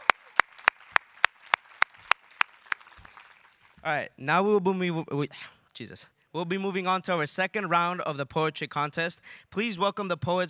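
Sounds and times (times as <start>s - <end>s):
claps after a round of a poetry contest: 0.0s - 3.9s
speech: 3.8s - 10.4s.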